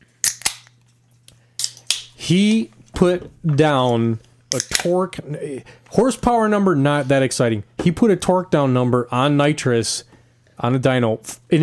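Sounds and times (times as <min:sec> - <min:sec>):
beer can cracked open: 0:00.2 - 0:00.8
speech: 0:02.2 - 0:11.6.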